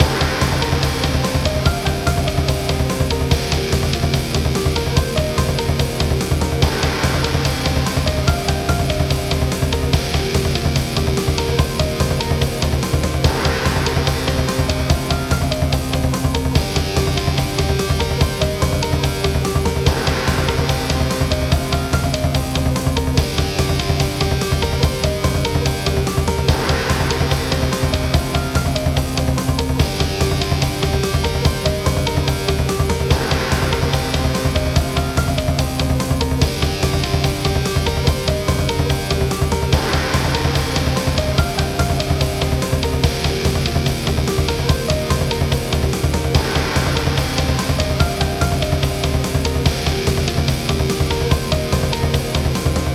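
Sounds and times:
samurai style music: 0:00.0 - 0:52.9.

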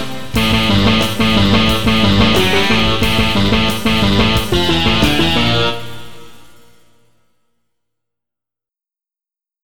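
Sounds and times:
rock music: 0:00.0 - 0:06.7.

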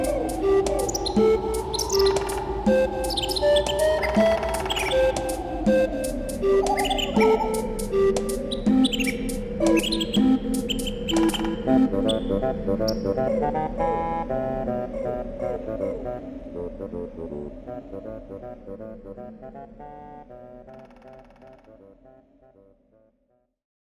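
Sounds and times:
autumn ambience: 0:00.0 - 0:18.9.

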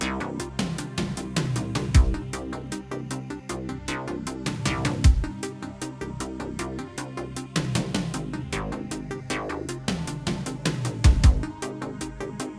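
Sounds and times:
game music loop: 0:00.0 - 0:02.5, 0:03.9 - 0:05.4, 0:07.7 - 0:11.8.

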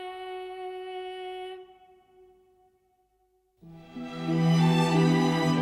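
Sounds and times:
orchestral music: 0:03.6 - 0:05.6.

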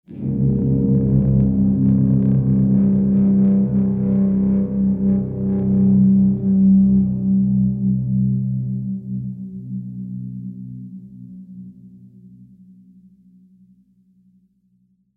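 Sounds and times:
scary guitar music: 0:00.1 - 0:09.0.

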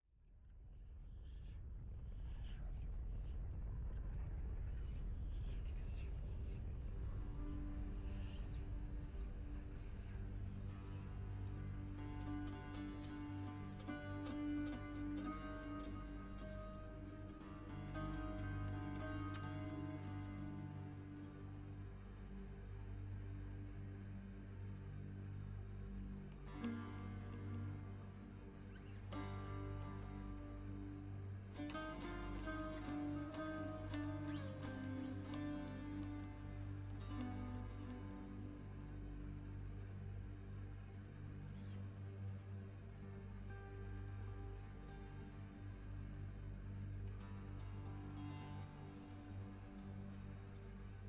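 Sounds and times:
ambience: 0:00.8 - 0:51.0
music: 0:01.8 - 0:51.0.

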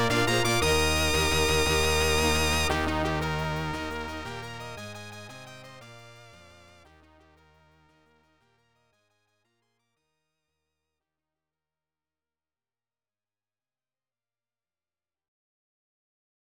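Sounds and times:
score display theme music: 0:00.0 - 0:05.3.

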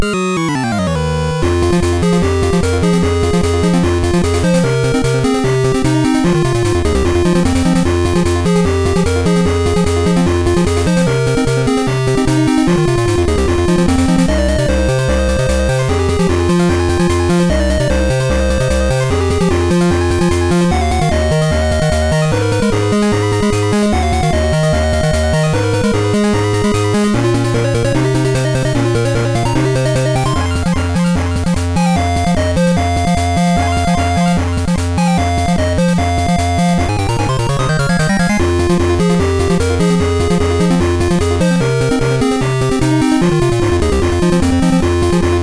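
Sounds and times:
monster battle music: 0:00.0 - 0:45.4.

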